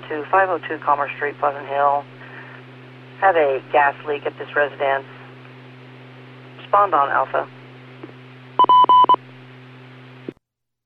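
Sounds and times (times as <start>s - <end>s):
constant low hum from a radio channel: 0.0s - 10.4s
speech: 0.1s - 2.2s, 3.2s - 5.1s, 6.7s - 7.6s
fire department dispatch paging tones: 8.6s - 9.2s.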